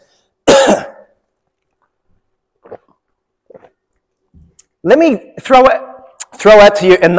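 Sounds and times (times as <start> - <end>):
person clearing throat: 0.4 - 1.2
speech: 4.8 - 5.8, 6.4 - 7.1.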